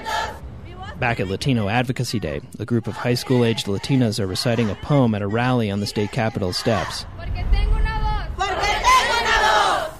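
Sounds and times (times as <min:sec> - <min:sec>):
rally crowd chanting: 0:00.0 - 0:00.4, 0:02.8 - 0:07.1, 0:08.4 - 0:09.9
speech: 0:01.0 - 0:07.2.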